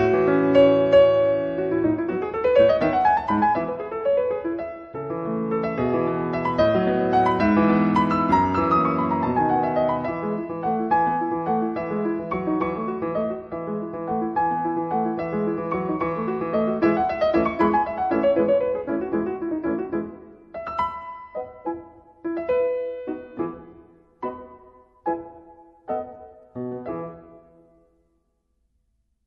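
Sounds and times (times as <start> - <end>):
scherzo played by a female concert pianist: 0.0 - 28.5.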